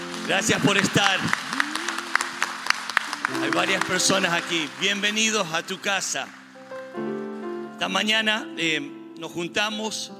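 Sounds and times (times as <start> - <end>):
audience applause: 0.0 - 6.8
speech: 0.3 - 1.6, 3.3 - 6.4, 7.8 - 10.1.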